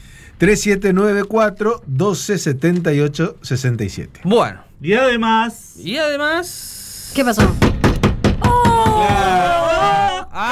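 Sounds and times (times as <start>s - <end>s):
speech: 0.4s - 7.8s
banging on a table: 7.4s - 9.6s.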